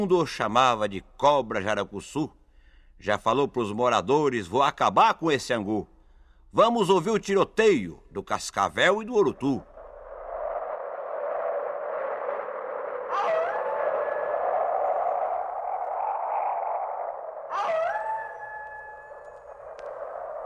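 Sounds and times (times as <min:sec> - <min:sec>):
speech: 0:00.0 - 0:02.4, 0:03.0 - 0:05.9, 0:06.5 - 0:09.7
howling wind: 0:09.1 - 0:20.4.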